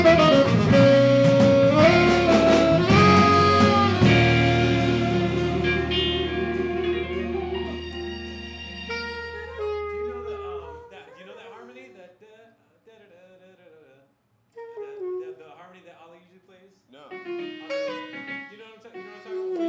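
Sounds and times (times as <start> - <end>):
guitar solo through a pedal: 0.0 - 10.7, 17.2 - 19.5.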